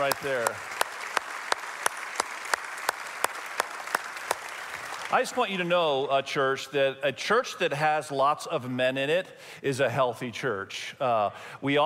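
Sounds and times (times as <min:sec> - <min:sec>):
speech: 0:00.0 - 0:00.7, 0:05.1 - 0:11.8
audience applause for fathers: 0:00.0 - 0:05.7.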